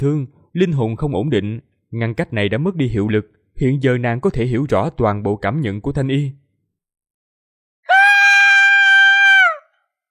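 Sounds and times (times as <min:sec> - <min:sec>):
speech: 0:00.0 - 0:06.4
woman screaming: 0:07.9 - 0:09.7.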